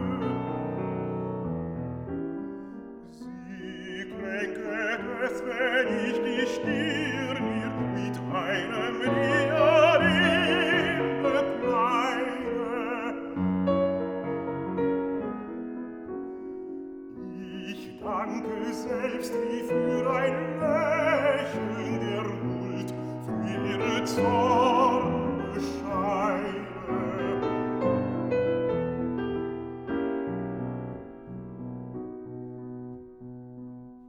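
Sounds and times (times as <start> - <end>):
piano: 0.0 - 34.0
person singing: 3.2 - 13.5, 17.2 - 27.8.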